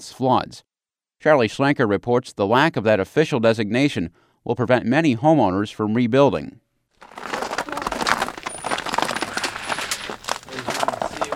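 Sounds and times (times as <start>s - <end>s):
speech: 0.0s - 7.3s
ice crunching underfoot outside Robin's Egg Blue home in Pontiac: 7.0s - 11.3s.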